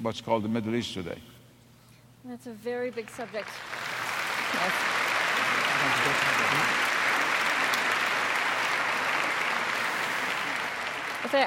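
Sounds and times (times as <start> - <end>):
speech: 0.0 - 1.4, 2.2 - 3.8, 4.5 - 5.0, 6.0 - 6.8, 11.2 - 11.4
audience applauding: 3.0 - 11.4.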